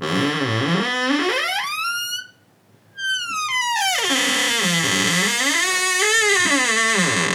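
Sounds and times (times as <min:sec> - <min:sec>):
door creaking: 0:00.0 - 0:02.3, 0:03.0 - 0:07.3.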